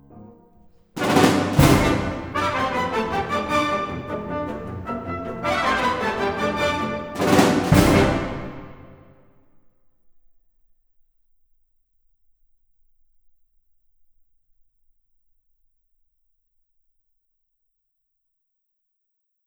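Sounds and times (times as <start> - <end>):
chamber orchestra playing a galop: 1.0 - 9.2.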